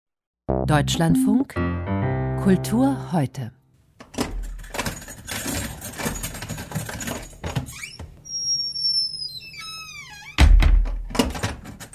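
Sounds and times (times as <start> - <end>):
speech: 0.5 - 4.2
heavy bunch of keys jangling in prison: 4.4 - 7.4
metal door squealing: 7.7 - 10.5
metal door slamming shut as lock engages: 10.2 - 11.4.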